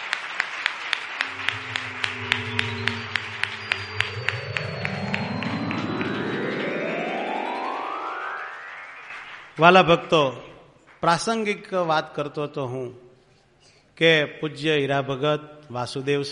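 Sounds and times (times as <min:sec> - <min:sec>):
audience applause welcoming the Acharya Maharaj at a religious assembly: 0:00.0 - 0:11.1
sustained rising tones: 0:01.2 - 0:09.6
speech: 0:09.6 - 0:13.0, 0:14.0 - 0:16.2.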